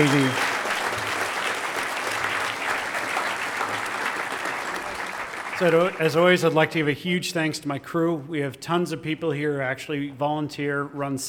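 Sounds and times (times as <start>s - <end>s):
speech: 0.0s - 0.5s, 5.6s - 11.2s
audience applause: 0.0s - 6.6s.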